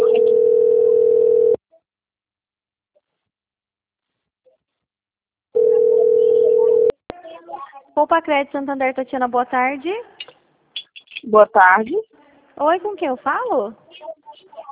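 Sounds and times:
telephone tone after hanging up: 0.0 - 1.6, 5.6 - 6.9
speech: 8.0 - 10.2, 11.2 - 14.1.

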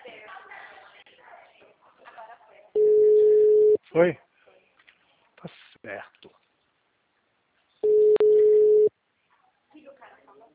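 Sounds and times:
telephone ringback tone: 2.8 - 3.8, 7.8 - 8.9
speech: 3.9 - 4.2, 5.4 - 6.4.

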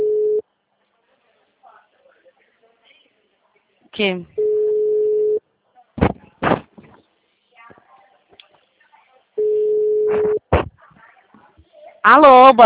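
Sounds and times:
telephone busy signal: 0.0 - 0.4, 4.4 - 5.4, 9.4 - 10.4
speech: 4.0 - 4.4, 12.1 - 12.6.

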